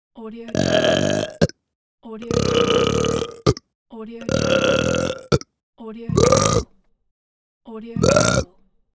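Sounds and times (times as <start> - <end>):
man burping: 0.5 - 1.5, 2.3 - 3.6, 4.3 - 5.5, 6.1 - 6.7, 8.0 - 8.4.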